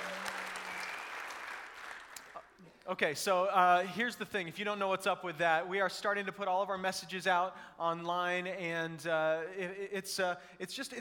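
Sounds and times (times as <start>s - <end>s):
church congregation applauding to welcome online viewers: 0.0s - 2.6s
speech: 2.9s - 11.0s.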